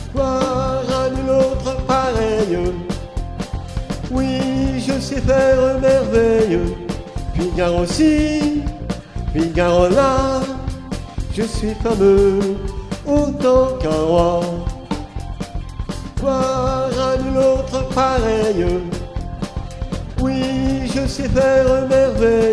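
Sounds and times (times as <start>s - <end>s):
tenor singing: 0.1s - 3.0s, 4.1s - 14.8s, 16.1s - 19.1s, 20.2s - 22.5s.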